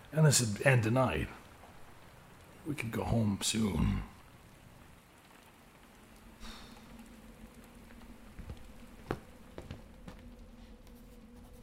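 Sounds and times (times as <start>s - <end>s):
soft steady rain falling on a roof: 0.0s - 11.6s
speech: 0.1s - 1.4s, 2.6s - 4.1s
low hum: 5.5s - 11.6s.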